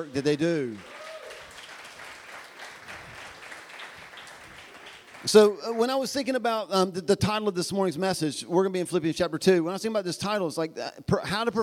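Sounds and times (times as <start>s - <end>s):
speech: 0.0s - 1.0s, 5.2s - 11.6s
audience clapping: 0.0s - 5.6s.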